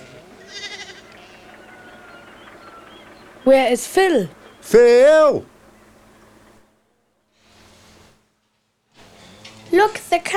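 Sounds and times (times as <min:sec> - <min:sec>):
sheep bleating: 0:00.0 - 0:03.0
speech: 0:03.4 - 0:05.5, 0:09.8 - 0:10.3.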